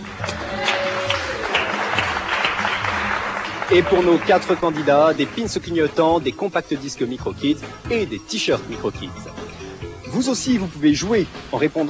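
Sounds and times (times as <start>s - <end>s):
audience applause: 0.0s - 5.5s
speech: 3.7s - 9.4s, 10.1s - 11.8s.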